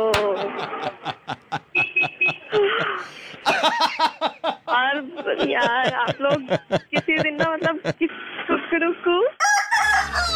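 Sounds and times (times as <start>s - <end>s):
laughter: 0.0s - 8.1s
speech: 5.2s - 6.8s
rooster crowing as a phone caller tune: 9.4s - 10.3s.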